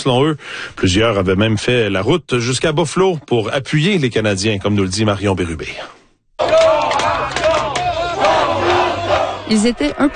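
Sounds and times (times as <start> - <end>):
speech: 0.0 - 6.7, 9.5 - 10.1
hockey fans cheering and chanting: 6.4 - 10.1.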